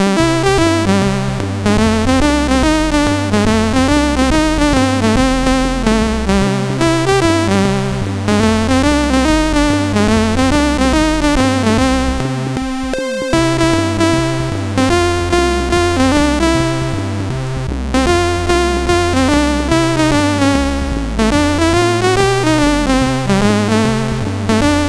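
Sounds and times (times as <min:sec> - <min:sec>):
CSG8580R5 sound chip: 0:00.0 - 0:24.8.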